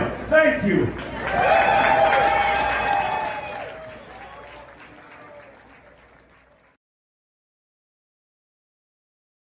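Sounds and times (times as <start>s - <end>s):
speech: 0.1s - 1.6s
audience applause: 1.0s - 6.8s.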